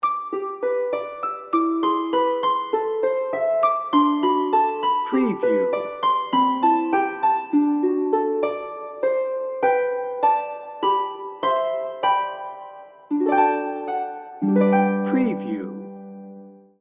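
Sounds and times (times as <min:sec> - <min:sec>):
Christmas carol: 0:00.0 - 0:16.8.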